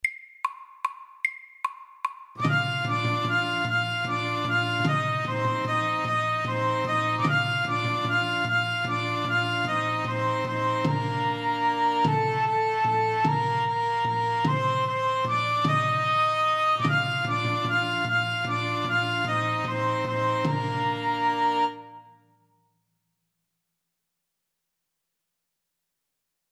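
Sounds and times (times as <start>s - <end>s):
fast Irish melody: 2.4s - 22.0s.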